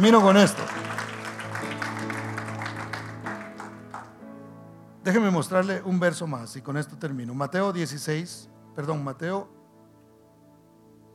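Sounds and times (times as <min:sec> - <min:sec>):
speech: 0:00.0 - 0:00.8, 0:05.0 - 0:09.6
audience applauding: 0:00.0 - 0:04.2.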